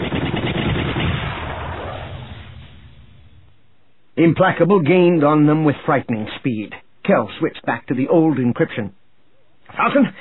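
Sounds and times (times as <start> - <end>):
starfighter cannon fire in a dogfight: 0.0 - 3.5
speech: 4.2 - 9.0, 9.7 - 10.2.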